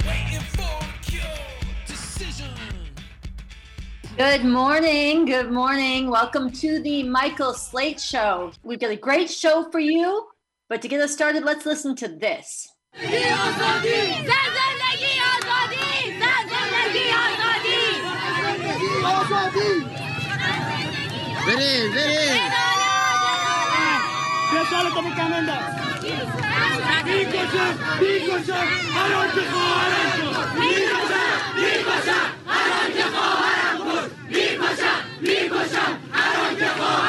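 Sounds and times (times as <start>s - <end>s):
protest crowd chanting in the streets of Iran during the uprising: 0.0s - 2.9s, 13.0s - 37.0s
speech: 4.2s - 14.7s, 21.5s - 22.7s, 24.5s - 37.0s.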